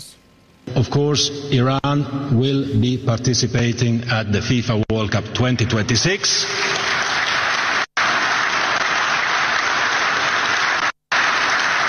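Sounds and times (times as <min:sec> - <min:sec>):
speech: 0:00.7 - 0:06.9
applause: 0:06.5 - 0:11.8.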